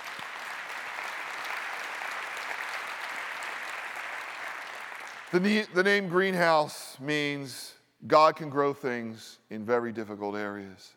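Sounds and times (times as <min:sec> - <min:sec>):
audience applause: 0:00.0 - 0:05.4
speech: 0:05.3 - 0:10.9.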